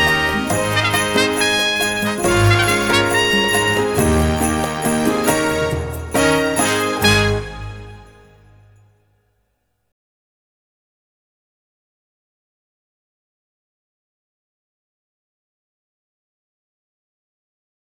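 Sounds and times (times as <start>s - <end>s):
musical accompaniment: 0.0s - 8.8s.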